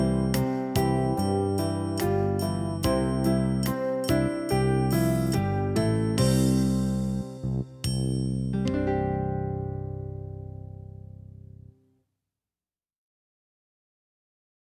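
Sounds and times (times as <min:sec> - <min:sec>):
slow imitative study: 0:00.0 - 0:11.3.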